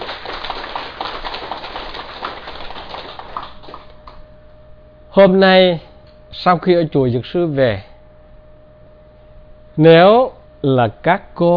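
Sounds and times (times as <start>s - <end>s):
audience applause: 0.0s - 4.0s
speech: 5.2s - 7.9s, 9.8s - 11.5s.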